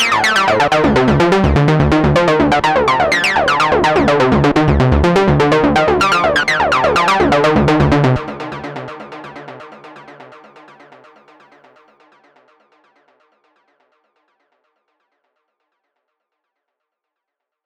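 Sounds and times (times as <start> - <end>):
303-style Sequential Circuits Pro-One synthesizer: 0.0 - 9.3.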